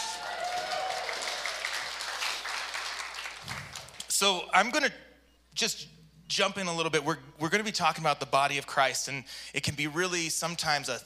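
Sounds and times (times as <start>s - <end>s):
faint whoop or whistle: 0.0s - 1.6s
crowd applauding: 0.0s - 4.1s
speech: 4.2s - 11.0s.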